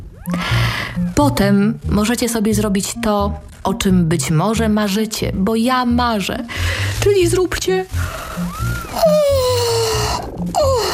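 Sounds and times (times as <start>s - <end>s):
speech: 0.2s - 9.4s
person yawning: 9.0s - 10.9s.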